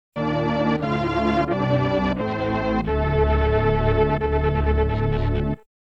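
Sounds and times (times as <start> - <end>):
appearance fanfare: 0.2 - 5.6.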